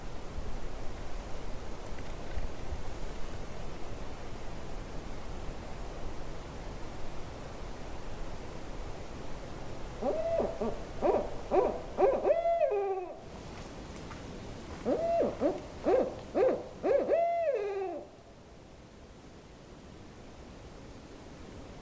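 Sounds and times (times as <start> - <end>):
owl hooting: 10.0 - 13.2, 14.8 - 18.2.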